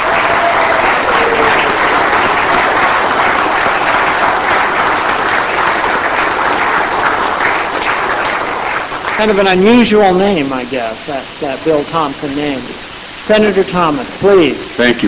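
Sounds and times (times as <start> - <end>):
round of applause: 0.0 - 10.4
speech: 9.2 - 15.0.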